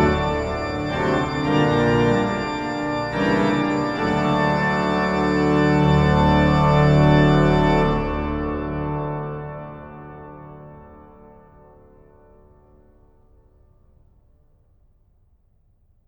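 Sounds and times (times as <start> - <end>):
organ chorale piece: 0.0 - 12.5.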